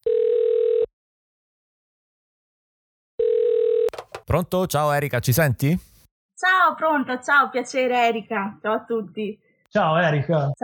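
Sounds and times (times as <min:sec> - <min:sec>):
phone line ringing: 0:00.0 - 0:00.9, 0:03.2 - 0:03.9
speech: 0:04.3 - 0:10.6.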